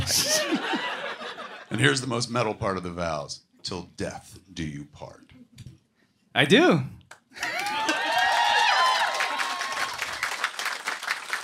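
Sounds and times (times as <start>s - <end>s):
laughter: 0.0s - 1.9s, 7.4s - 8.3s
speech: 1.7s - 5.3s, 6.4s - 7.8s
audience applause in comedy club: 7.4s - 11.4s.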